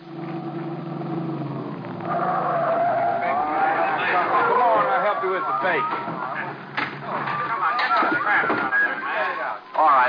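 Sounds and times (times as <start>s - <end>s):
car engine revving as it speeds off: 0.0s - 7.5s
tires squealing: 0.0s - 9.2s
speech: 4.6s - 6.3s.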